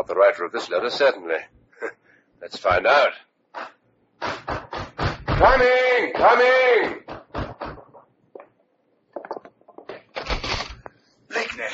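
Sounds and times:
speech: 0:00.0 - 0:01.6, 0:02.4 - 0:04.4, 0:05.4 - 0:07.0
pounding on a door: 0:04.2 - 0:07.9.

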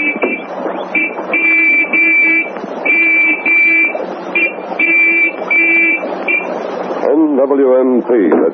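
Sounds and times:
sergeant's gold whistle blasts spelling out an answer: 0:00.0 - 0:06.5
speech: 0:07.5 - 0:08.5.

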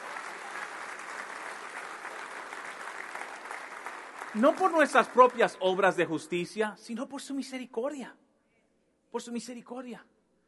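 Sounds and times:
steady dense applause from a large audience: 0:00.0 - 0:05.8
speech: 0:04.3 - 0:08.2, 0:09.1 - 0:10.1.

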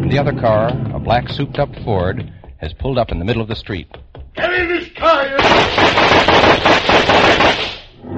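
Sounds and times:
speech: 0:00.1 - 0:07.7
gunshots: 0:05.4 - 0:08.0.

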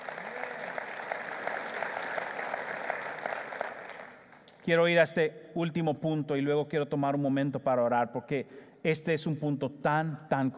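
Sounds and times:
audience applause: 0:00.0 - 0:04.5
speech: 0:04.7 - 0:10.5.

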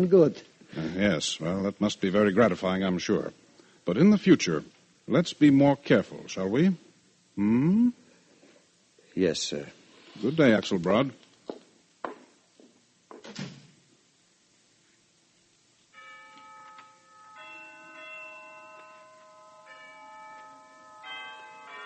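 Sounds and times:
speech: 0:00.0 - 0:06.8, 0:07.4 - 0:08.0, 0:09.2 - 0:11.2
Harkness Tower chimes of noon: 0:15.9 - 0:21.8.

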